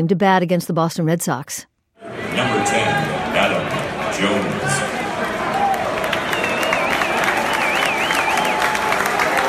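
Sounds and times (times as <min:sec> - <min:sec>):
speech: 0:00.0 - 0:05.0
Fenway Park baseball stadium crowd standing ovation: 0:02.0 - 0:09.4
wavering whistle: 0:06.2 - 0:08.9.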